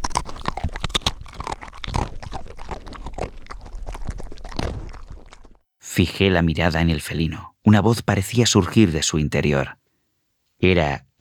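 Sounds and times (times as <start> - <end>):
mechanical chewing of food: 0.0 - 5.6
speech: 6.0 - 9.8, 10.6 - 11.1.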